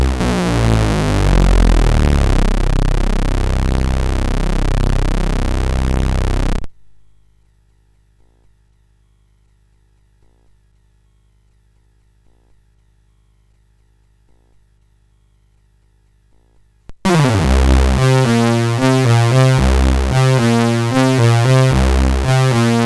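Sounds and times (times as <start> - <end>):
funk rock music on a CSG8580R5 SID chip: 0.0 - 6.7, 17.0 - 22.8.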